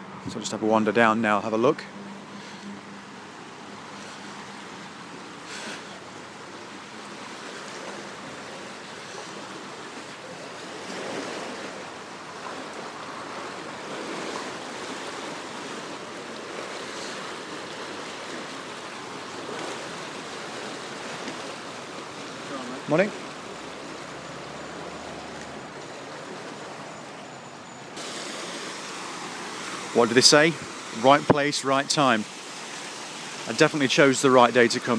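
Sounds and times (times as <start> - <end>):
water rushing through canal lock gate: 0.0 - 34.9
speech: 0.2 - 2.0, 22.9 - 23.2, 30.0 - 32.4, 33.5 - 34.9.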